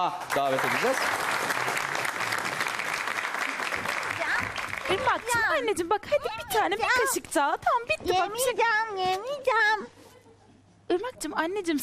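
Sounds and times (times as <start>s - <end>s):
speech: 0.0s - 1.5s, 4.9s - 10.0s, 10.9s - 11.8s
audience applause: 0.0s - 5.6s.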